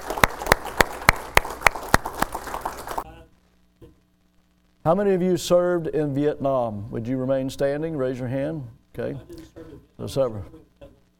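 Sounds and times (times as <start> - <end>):
audience applause for veterans: 0.0 - 3.0
loud single person clapping: 0.0 - 3.0
speech: 4.8 - 10.6.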